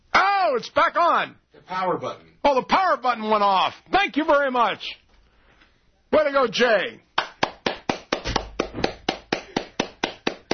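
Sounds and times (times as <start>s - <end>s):
speech: 0.5s - 5.0s, 6.1s - 7.1s
soft polite golf claps: 7.2s - 10.5s.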